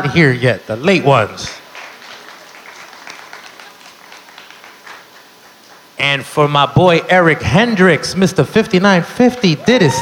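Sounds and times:
speech: 0.0s - 1.6s, 6.0s - 10.0s
crowd applauding: 1.6s - 6.0s
crowd cheering: 1.6s - 6.0s, 9.5s - 10.0s.

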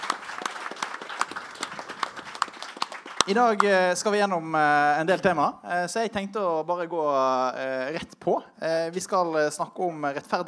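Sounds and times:
audience applause: 0.0s - 4.0s
speech: 3.3s - 10.4s.

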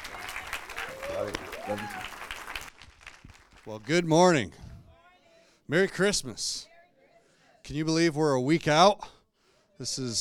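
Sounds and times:
church congregation applauding to welcome their pastor at a Christmas-season service: 0.0s - 4.0s
speech: 1.2s - 2.1s, 3.6s - 4.6s, 5.7s - 6.7s, 7.6s - 9.2s, 9.8s - 10.1s.

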